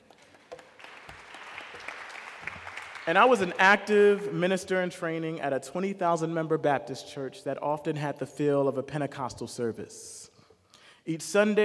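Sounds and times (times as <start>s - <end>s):
audience clapping: 0.0s - 4.2s
speech: 3.1s - 10.2s, 11.1s - 11.6s.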